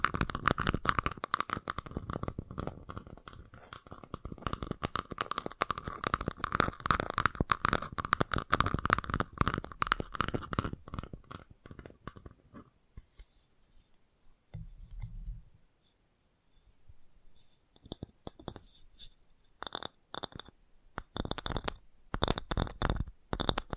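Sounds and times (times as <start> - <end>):
fast tapping: 0.0 - 12.3, 19.6 - 23.7.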